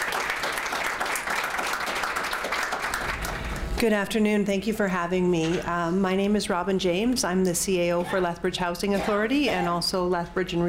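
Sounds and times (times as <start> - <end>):
audience applause welcoming a speaker to the stage: 0.0 - 3.6
speech: 3.8 - 10.6.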